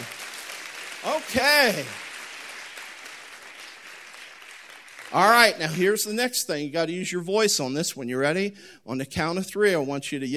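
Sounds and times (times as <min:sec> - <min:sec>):
crowd clapping loudly: 0:00.0 - 0:06.1
speech: 0:01.1 - 0:02.0, 0:05.1 - 0:10.3.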